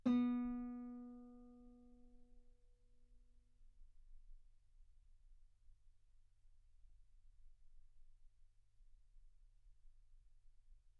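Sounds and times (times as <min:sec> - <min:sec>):
guitar note B3: 0:00.0 - 0:01.7.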